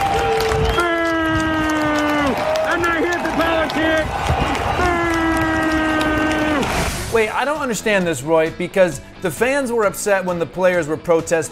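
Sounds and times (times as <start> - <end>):
stadium crowd booing: 0.0 - 7.1
speech: 7.2 - 11.5.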